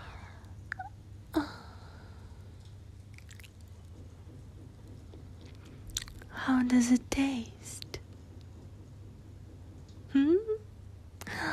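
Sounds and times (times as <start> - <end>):
low steady hum: 0.0 - 11.5
chewing and biting at a prepared feast: 3.1 - 3.8, 5.9 - 6.3
speech: 6.6 - 7.8.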